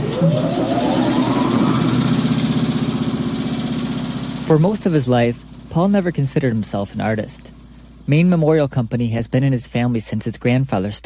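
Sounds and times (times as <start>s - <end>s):
sandblasting machine switching on: 0.0s - 4.6s
speech: 0.2s - 0.8s, 4.5s - 11.0s.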